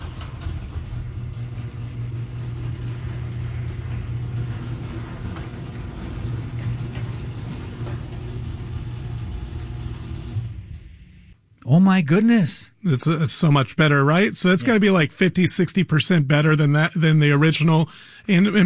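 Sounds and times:
noisy garage door motor drone with mechanical rattle: 0.0 - 11.5
speech: 11.7 - 18.6.

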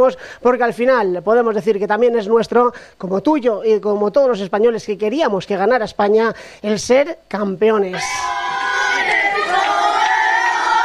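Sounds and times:
speech: 0.0 - 8.4
large crowd chanting a victory cry: 8.0 - 10.8.

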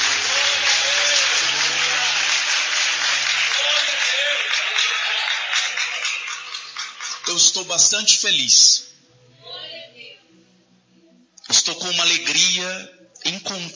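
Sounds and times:
audience applauding: 0.0 - 7.8
speech: 7.4 - 8.8, 11.8 - 13.7.

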